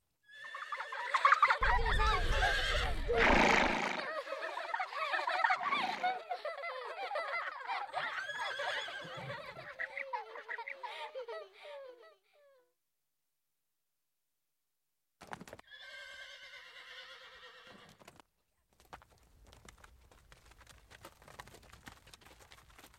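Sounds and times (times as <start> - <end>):
horses neighing on a Tibetan grassland pasture: 0.3 - 6.3, 8.1 - 9.6, 15.7 - 17.9
laughter: 0.7 - 12.2.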